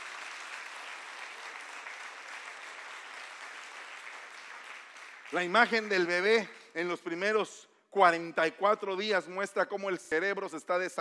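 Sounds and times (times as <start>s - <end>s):
audience applause: 0.0s - 6.1s
speech: 5.3s - 10.9s.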